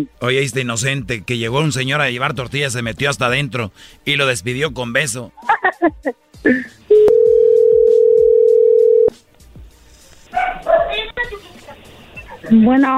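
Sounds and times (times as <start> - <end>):
speech: 0.0 - 7.4, 12.5 - 12.9
dropped phone call dial tone: 6.9 - 9.1
sharp barking sounds: 10.3 - 11.1.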